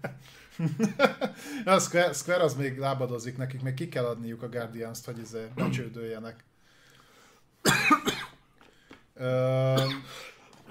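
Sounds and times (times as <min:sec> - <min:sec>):
speech: 0:00.6 - 0:06.5, 0:09.2 - 0:10.6
person having a coughing fit: 0:05.6 - 0:05.9, 0:07.6 - 0:08.4, 0:09.6 - 0:10.6.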